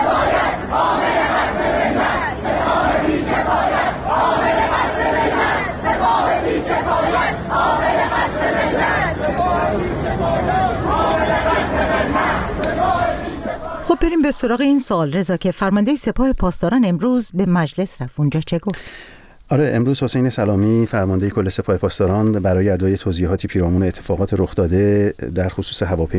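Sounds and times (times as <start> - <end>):
students chanting slogans in unison in Tehran: 0.0 - 14.4
speech: 14.0 - 26.1.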